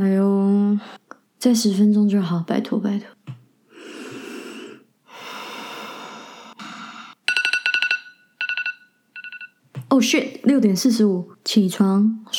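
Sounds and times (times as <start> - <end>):
speech: 0.8 - 3.2, 9.9 - 12.3
alarm clock ringing: 7.3 - 9.6.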